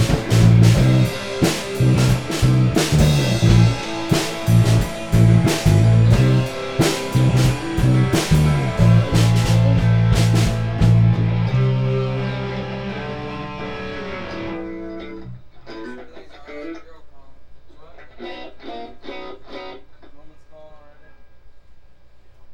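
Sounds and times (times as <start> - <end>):
musicians jamming: 0.0 - 15.4.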